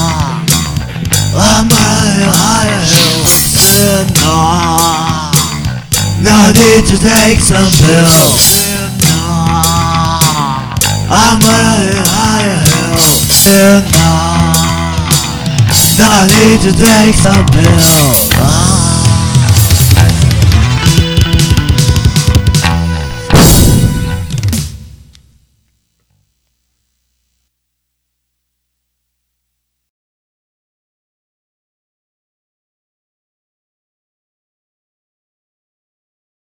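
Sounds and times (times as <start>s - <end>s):
bass: 0.0s - 25.4s.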